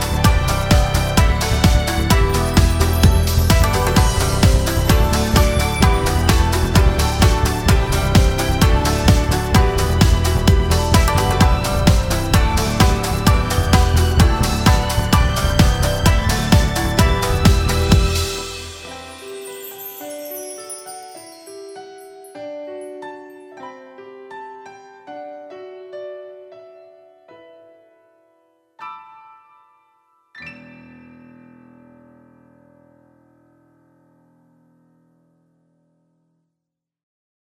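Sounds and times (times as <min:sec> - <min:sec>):
jazz music: 0:00.0 - 0:20.9.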